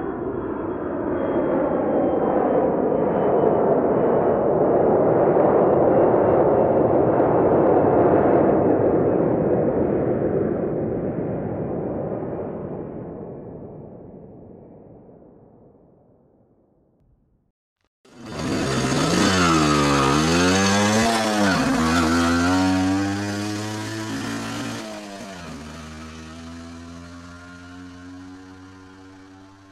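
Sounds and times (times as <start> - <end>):
airplane: 0.0 - 15.7, 18.1 - 29.7
car driving: 18.1 - 29.7
motorcycle: 18.1 - 29.7
tractor: 18.1 - 29.7.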